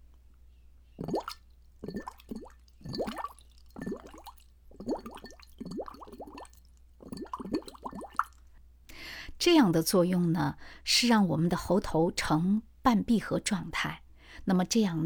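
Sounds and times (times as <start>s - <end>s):
bubbles blown through a straw into water: 1.0s - 8.4s
speech: 9.4s - 15.0s.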